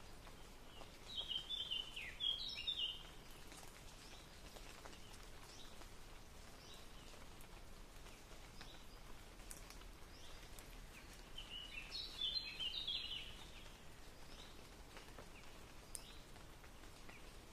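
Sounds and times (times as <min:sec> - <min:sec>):
rain ambience: 0:00.0 - 0:17.5.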